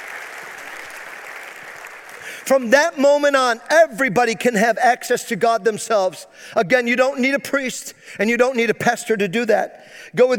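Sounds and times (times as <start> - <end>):
round of applause: 0.0 - 2.6
speech: 2.4 - 10.3.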